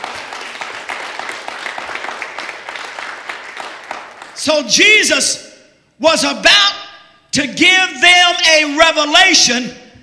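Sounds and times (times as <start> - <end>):
crowd clapping: 0.0 - 4.6
speech: 4.4 - 6.8, 7.4 - 9.8.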